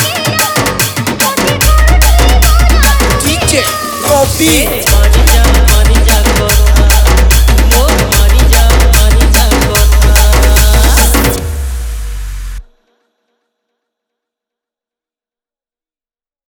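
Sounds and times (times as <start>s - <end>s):
Sambalpuri rhythm music mix: 0.0s - 12.7s.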